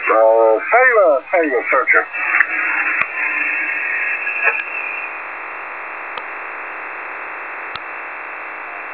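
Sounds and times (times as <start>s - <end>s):
unknown HF radio station signals: 0.0s - 8.9s.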